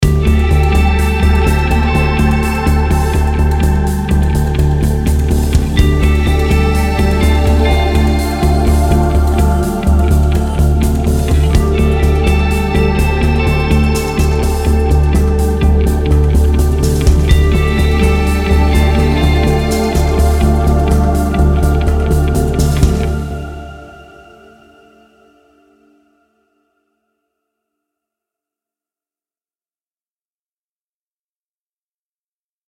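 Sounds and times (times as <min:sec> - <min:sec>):
guitar theme: 0:00.0 - 0:26.0.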